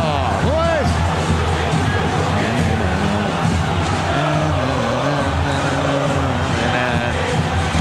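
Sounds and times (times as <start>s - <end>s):
football fans chanting in stadium: 0.0s - 7.7s
laughter: 2.0s - 7.4s.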